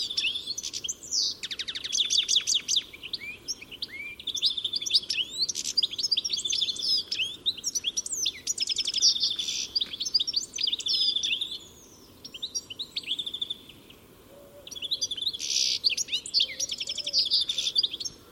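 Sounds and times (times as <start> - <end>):
bird chirping: 0.0 - 18.3.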